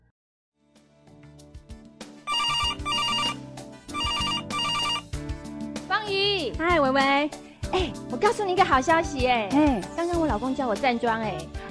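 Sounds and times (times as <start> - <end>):
telephone ringing: 2.3 - 5.0
speech: 6.4 - 11.6.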